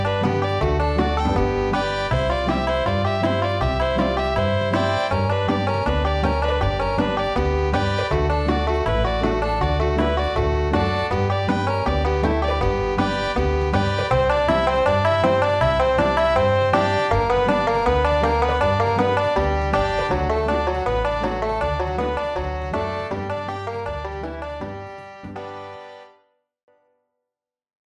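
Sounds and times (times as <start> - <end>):
solo on a five-string banjo: 0.0 - 26.0.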